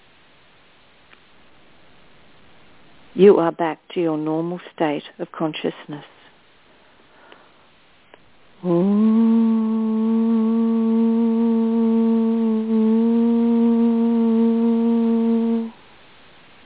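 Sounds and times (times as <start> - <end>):
speech: 3.2 - 6.1, 8.6 - 8.9
low meditation tone with rich overtones: 8.6 - 15.8.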